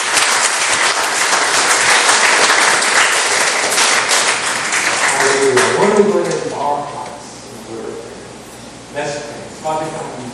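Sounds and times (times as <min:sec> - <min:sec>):
church congregation clapping in praise during a worship service: 0:00.0 - 0:06.6
speech: 0:05.4 - 0:07.1.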